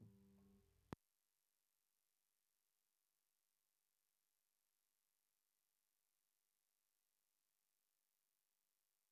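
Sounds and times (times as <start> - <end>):
bass guitar recorded by direct input: 0.0 - 0.4.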